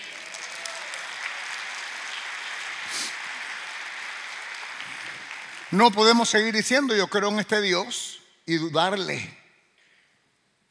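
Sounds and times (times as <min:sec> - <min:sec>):
audience applause: 0:00.0 - 0:06.8
speech: 0:05.7 - 0:09.4.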